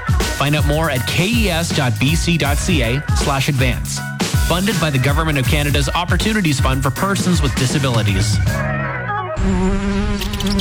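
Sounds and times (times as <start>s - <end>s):
speech: 0.4s - 8.8s, 9.4s - 10.5s
flying insects buzzing: 9.2s - 10.5s.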